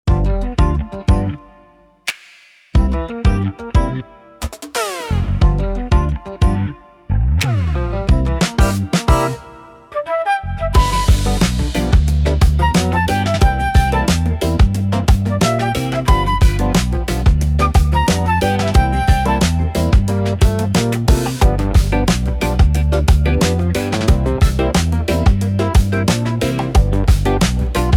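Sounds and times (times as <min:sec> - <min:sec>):
street groove music: 0:00.1 - 0:27.9.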